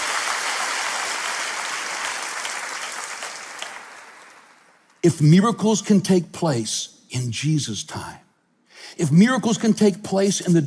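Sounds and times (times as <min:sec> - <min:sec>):
audience applause: 0:00.0 - 0:04.9
speech: 0:05.0 - 0:08.2, 0:09.0 - 0:10.6.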